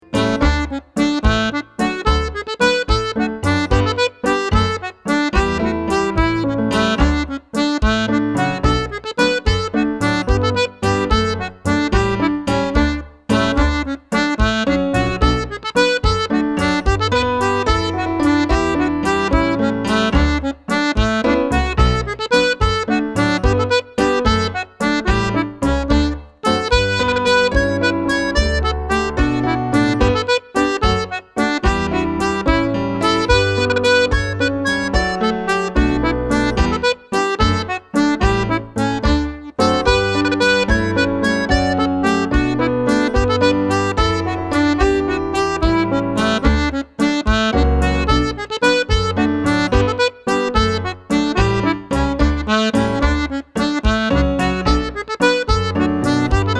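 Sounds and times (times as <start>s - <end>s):
treble jig tune: 0.0s - 56.5s.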